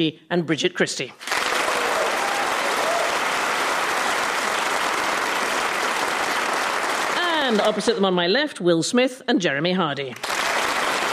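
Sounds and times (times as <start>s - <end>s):
speech: 0.0s - 1.3s, 7.5s - 10.3s
studio audience at a panel show applauding: 1.2s - 8.1s, 10.1s - 11.1s.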